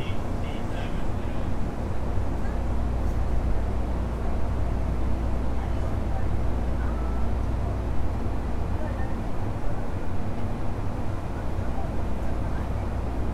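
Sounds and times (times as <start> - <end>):
Osaka Metro 10 series chopper train running on the Midosuji line: 0.0 - 13.3.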